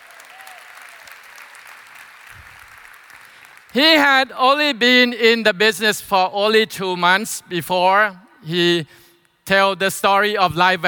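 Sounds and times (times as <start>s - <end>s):
audience round of applause: 0.0s - 3.8s
speech: 3.7s - 10.8s.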